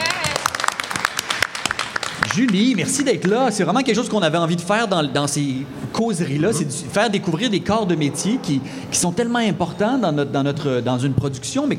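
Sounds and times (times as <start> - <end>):
audience clapping to welcome a guest on stage at a talk series: 0.0 - 3.7
speech: 2.3 - 11.7.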